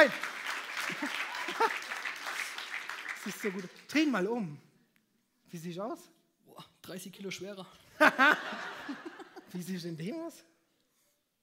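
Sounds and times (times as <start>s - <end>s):
speech: 0.0s - 0.2s, 0.9s - 1.8s, 3.2s - 4.7s, 5.5s - 10.5s
audience clapping: 0.0s - 4.5s
laughter: 0.8s - 2.1s, 8.0s - 9.5s.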